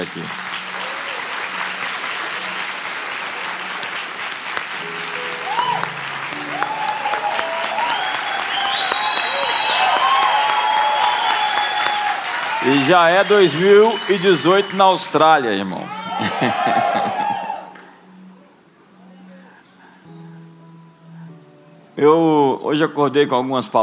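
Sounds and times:
speech: 0.0s - 0.4s, 12.7s - 17.3s, 22.0s - 23.8s
audience applause: 0.0s - 17.8s
laughter: 16.0s - 17.6s.

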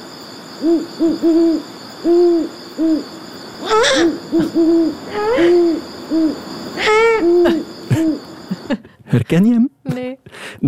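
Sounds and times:
great horned owl Bubo virginianus hooting: 0.6s - 8.5s
speech: 0.6s - 10.6s.

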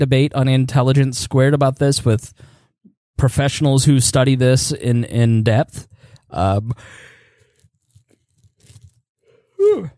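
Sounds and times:
speech: 0.0s - 2.5s, 3.2s - 7.1s, 9.6s - 9.9s
person yawning: 9.5s - 9.9s.

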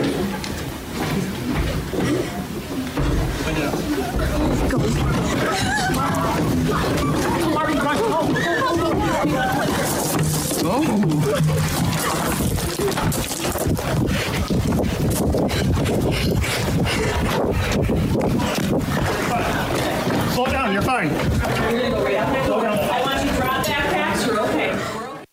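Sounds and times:
students scrambling out through a window: 0.0s - 25.3s
laughter: 3.4s - 13.9s, 15.8s - 20.4s.

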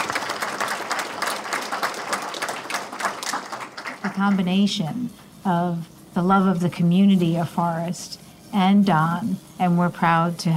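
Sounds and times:
audience applause welcoming speakers at a Bank of Forest event: 0.0s - 4.5s
speech: 4.2s - 10.5s.

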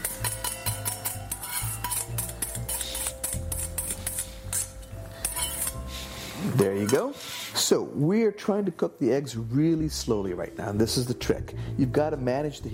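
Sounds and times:
utensil scraping and clicking against metal pan: 0.0s - 7.6s
speech: 6.5s - 12.7s.

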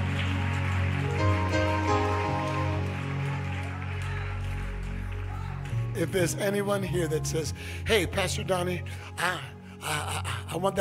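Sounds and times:
audience clapping hands: 0.0s - 7.0s
speech: 6.0s - 10.7s.

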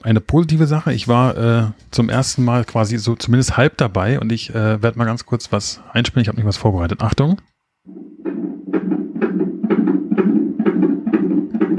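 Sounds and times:
speech: 0.0s - 8.0s
fetal heartbeat recorded by ultrasound Doppler: 7.9s - 11.7s.

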